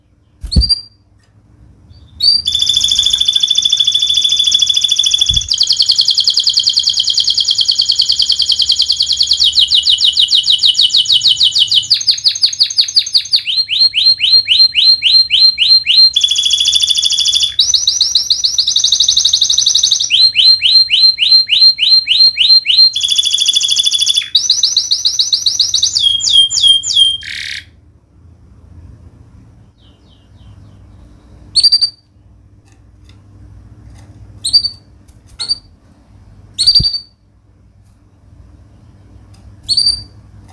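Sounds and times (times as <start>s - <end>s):
canary singing rapid rattling trills: 1.9s - 27.8s, 29.6s - 32.2s, 36.6s - 37.2s, 39.7s - 40.2s.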